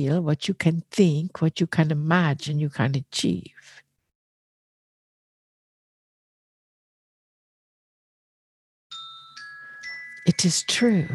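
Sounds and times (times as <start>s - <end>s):
speech: 0.0s - 3.8s, 10.3s - 11.1s
bells ringing: 8.9s - 11.1s.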